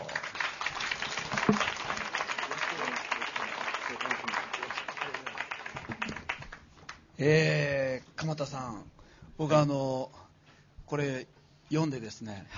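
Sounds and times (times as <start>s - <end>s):
audience applause: 0.0s - 6.6s
speech: 7.2s - 10.2s, 10.9s - 12.5s.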